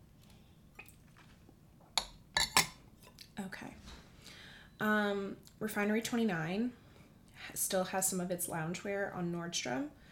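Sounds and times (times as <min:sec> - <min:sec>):
glass clinking while sipping a martini: 0:02.0 - 0:02.8
speech: 0:04.8 - 0:06.8, 0:07.5 - 0:10.0.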